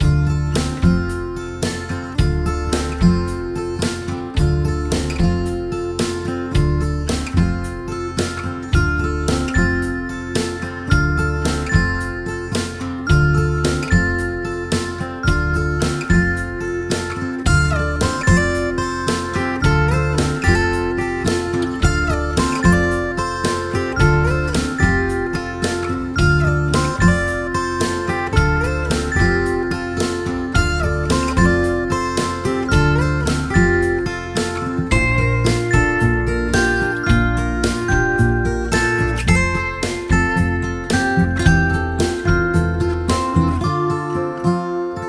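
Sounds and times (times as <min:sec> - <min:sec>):
entertainment string music: 0:00.0 - 0:44.9.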